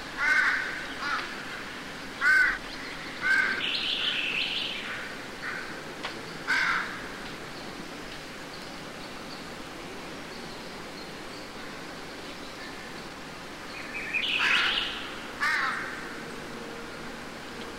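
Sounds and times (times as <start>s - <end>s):
crow cawing in woods: 0.2s - 1.6s, 2.2s - 2.6s, 3.2s - 4.2s, 4.8s - 5.8s, 6.5s - 7.1s, 14.3s - 16.2s.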